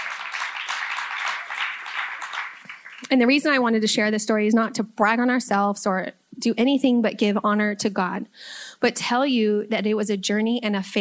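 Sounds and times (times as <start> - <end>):
audience clapping: 0.0 - 3.6
speech: 3.0 - 11.0.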